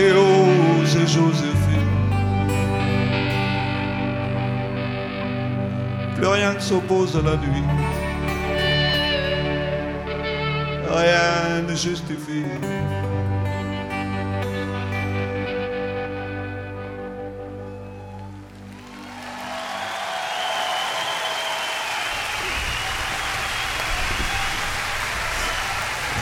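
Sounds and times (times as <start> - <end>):
music with sustained tones: 0.0 - 21.4
speech: 6.5 - 8.1, 10.9 - 13.2
audience applause: 17.7 - 26.2.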